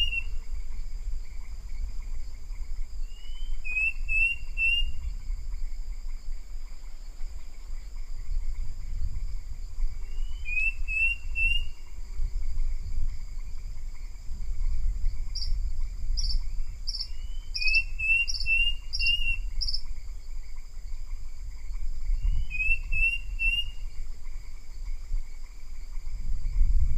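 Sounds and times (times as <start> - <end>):
bird giving whistled notes: 0.0 - 0.3, 3.1 - 5.0, 10.1 - 11.8, 16.2 - 19.8, 22.2 - 23.8
steady insect-like droning tones: 0.0 - 26.9.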